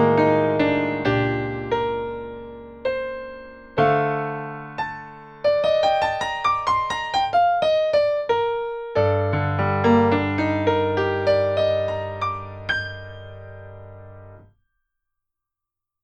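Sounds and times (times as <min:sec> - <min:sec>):
Bechstein piano: 0:00.0 - 0:14.6.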